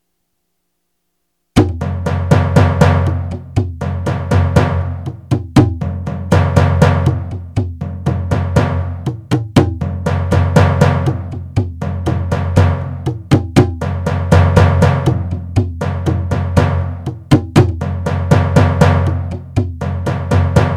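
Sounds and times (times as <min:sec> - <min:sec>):
drum loop: 0:01.6 - 0:20.7.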